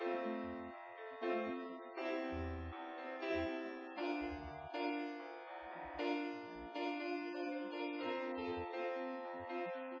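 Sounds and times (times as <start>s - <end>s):
instrumental music: 0.0s - 9.9s.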